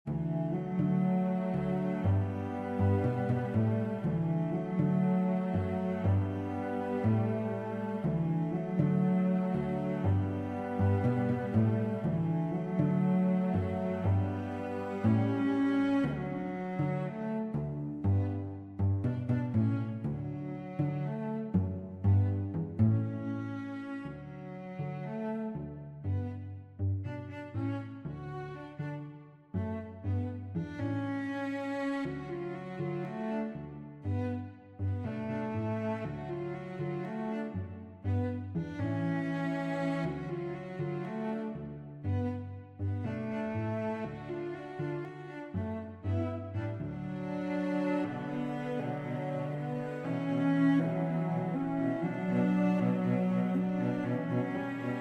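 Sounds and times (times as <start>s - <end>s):
cello pizzicato: 0.0s - 55.0s.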